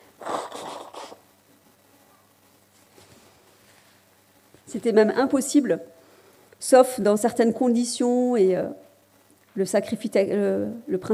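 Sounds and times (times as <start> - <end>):
person blowing nose: 0.2 - 1.2
speech: 4.7 - 6.0, 6.7 - 8.8, 9.6 - 11.1.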